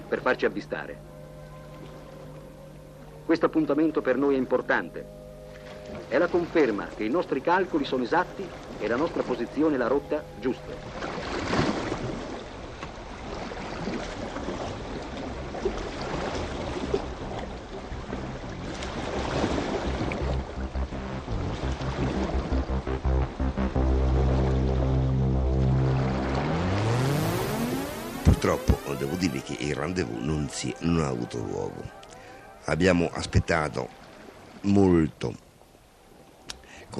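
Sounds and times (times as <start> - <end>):
speech: 0.1 - 1.2, 3.3 - 5.2, 5.9 - 11.6, 29.7 - 32.1, 32.7 - 34.0, 34.6 - 35.4
dinghy being launched into the sea: 3.7 - 31.3.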